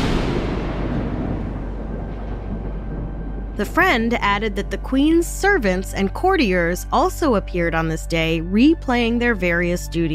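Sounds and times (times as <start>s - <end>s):
thunder crash sound effect: 0.0s - 6.8s
speech: 3.6s - 10.1s.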